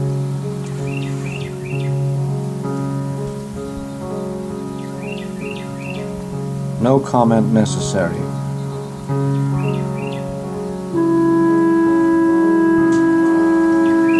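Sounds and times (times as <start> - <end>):
wren singing: 0.0 - 14.1
speech: 6.8 - 8.4.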